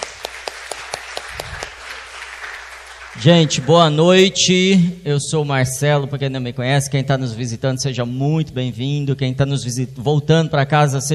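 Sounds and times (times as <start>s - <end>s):
audience applause: 0.0s - 3.9s
speech: 3.2s - 11.1s.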